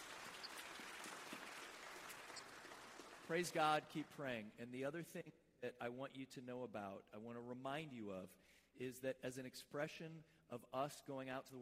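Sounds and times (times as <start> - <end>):
audience clapping: 0.0 - 4.2
speech: 3.3 - 11.6.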